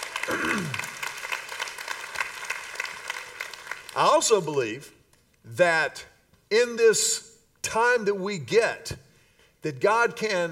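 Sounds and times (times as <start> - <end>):
audience clapping for fathers: 0.0 - 4.6
speech: 4.0 - 9.0, 9.6 - 10.5.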